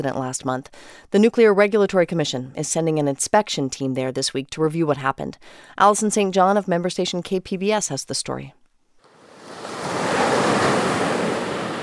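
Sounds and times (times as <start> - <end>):
speech: 0.0 - 8.6
waves breaking against a seawall at San Onofre State Beach: 9.1 - 11.8.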